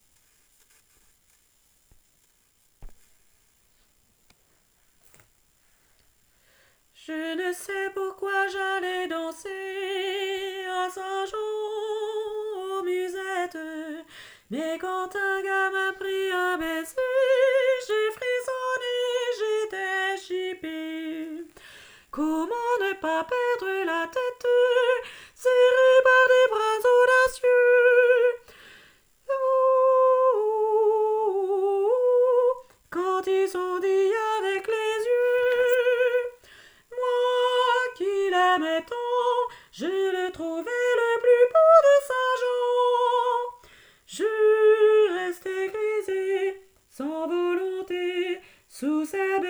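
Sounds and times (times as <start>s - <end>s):
soprano singing: 7.0s - 28.6s, 29.2s - 49.4s.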